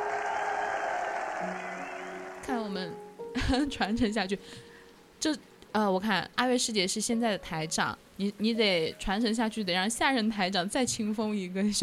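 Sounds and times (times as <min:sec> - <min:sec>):
audience applause: 0:00.0 - 0:02.6
speech: 0:02.4 - 0:11.8.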